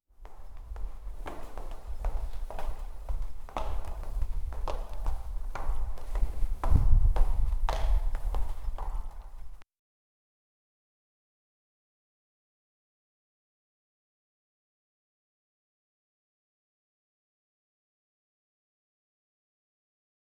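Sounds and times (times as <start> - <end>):
footsteps walking in a big studio: 0.2 - 9.6.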